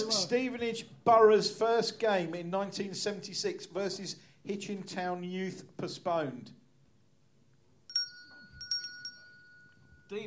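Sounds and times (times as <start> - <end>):
speech: 0.0 - 6.6
small bright bell struck and ringing: 7.9 - 10.2.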